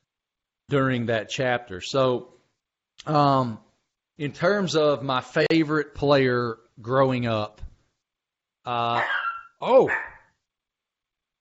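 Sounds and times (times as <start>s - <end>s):
speech: 0.7s - 2.4s, 3.0s - 3.6s, 4.2s - 7.7s, 8.7s - 10.1s
dog barking and whimpering, wanting to be let out: 9.0s - 10.2s.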